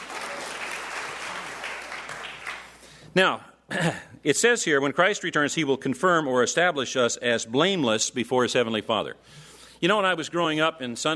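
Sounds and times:
audience clapping: 0.0 - 2.9
speech: 3.1 - 11.1.

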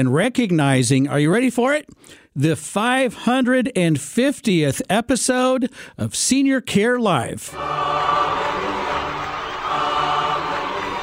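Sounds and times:
speech: 0.0 - 8.6
choir singing: 7.5 - 11.0
crowd applause: 7.5 - 11.0.

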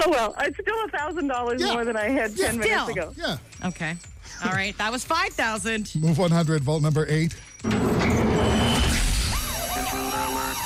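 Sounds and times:
speech: 0.0 - 8.2
game show alarm siren: 7.6 - 10.6.

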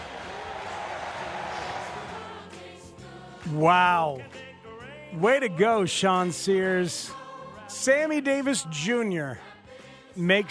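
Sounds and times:
baseball crowd cheering a home run: 0.0 - 2.5
speech: 3.4 - 4.4, 5.1 - 9.5, 10.2 - 10.4.

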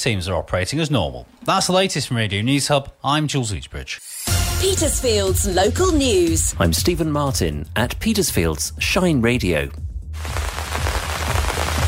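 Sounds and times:
speech: 0.0 - 10.4
rain showers pattering after a long dry spell: 10.2 - 11.8.

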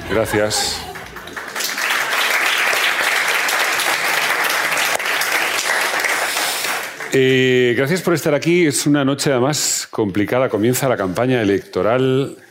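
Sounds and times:
spontaneous audience applause: 0.0 - 8.0
speech: 0.1 - 0.9, 7.1 - 12.4.

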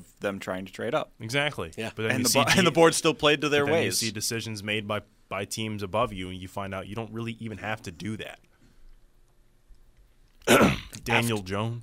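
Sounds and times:
speech: 0.2 - 8.5, 10.5 - 11.8
person clearing throat near the microphone: 10.4 - 11.0.

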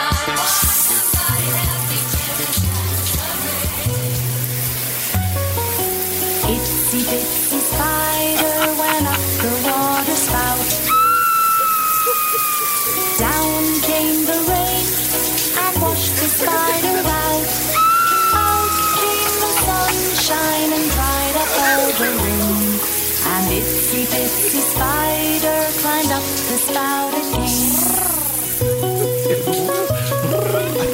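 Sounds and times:
shower running: 0.2 - 30.9
laughter: 7.9 - 22.9, 24.1 - 25.2, 28.8 - 30.9.

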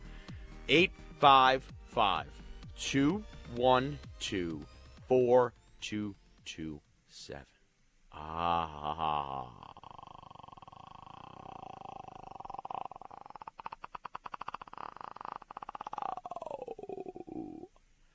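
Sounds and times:
speech: 0.7 - 7.5, 8.2 - 9.8
person imitating a lion roar with a throaty growl: 8.1 - 17.7.

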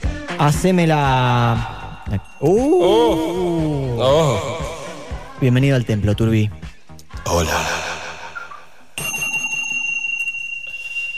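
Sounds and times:
speech: 0.4 - 4.6, 5.4 - 6.6, 7.2 - 7.8
Tibetan metal bell ringing: 1.4 - 3.8, 9.0 - 11.1.

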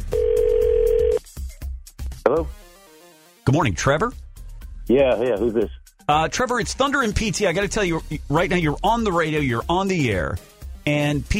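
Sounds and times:
telephone dial tone on an outgoing call: 0.1 - 1.2
speech: 3.5 - 4.2, 4.9 - 11.3.

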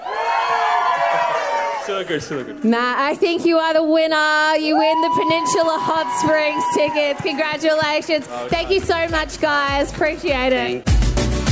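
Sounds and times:
crowd cheering: 0.0 - 2.7, 4.5 - 9.4
speech: 1.9 - 10.9.

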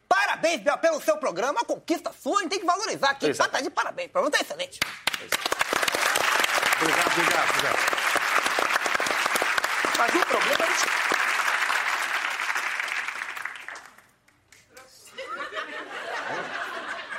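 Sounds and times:
speech: 0.4 - 5.6, 6.8 - 8.0, 10.0 - 11.2
applause: 4.8 - 14.9
laughter: 14.9 - 17.1.

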